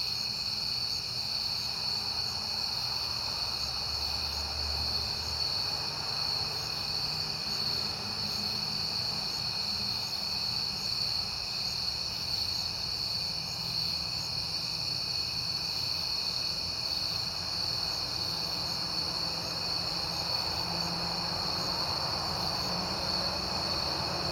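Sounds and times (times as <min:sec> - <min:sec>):
crickets chirping: 0:00.0 - 0:24.2
car passing: 0:02.4 - 0:10.8, 0:17.1 - 0:24.2.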